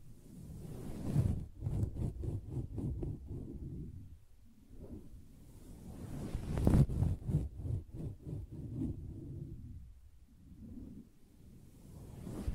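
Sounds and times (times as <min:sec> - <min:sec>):
taps and scratches on a fabric surface: 0:01.1 - 0:03.9, 0:06.4 - 0:09.2.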